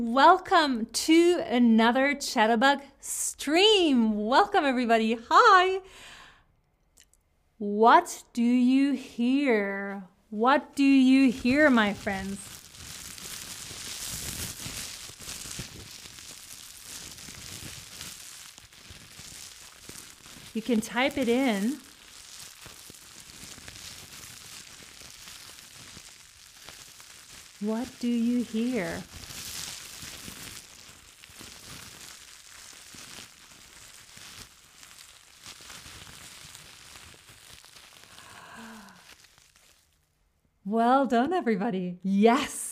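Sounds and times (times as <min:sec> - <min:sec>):
speech: 0:00.0 - 0:06.1, 0:07.6 - 0:12.6, 0:20.6 - 0:21.8, 0:27.6 - 0:29.2, 0:40.7 - 0:42.6
fire sound effect made with cling wrap and a crumpled bag: 0:08.9 - 0:40.2.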